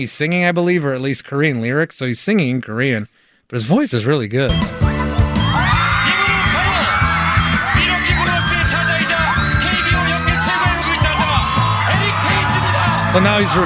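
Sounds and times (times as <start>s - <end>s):
speech: 0.0s - 4.8s, 13.2s - 13.6s
crowd cheering and yelling: 4.8s - 13.6s.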